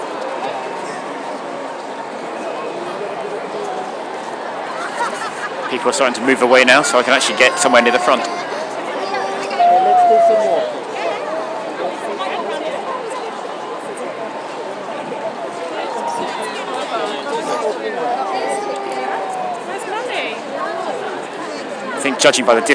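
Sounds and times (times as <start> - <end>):
big crowd babble of many voices: 0.0 - 22.7
speech: 5.7 - 8.4, 22.2 - 22.7
brief brighter voice rising above the hubbub: 9.3 - 11.4.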